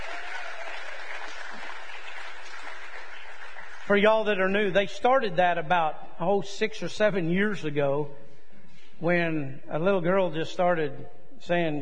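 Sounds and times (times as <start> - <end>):
audience applause: 0.0 - 4.0
speech: 3.9 - 8.2, 9.0 - 11.8.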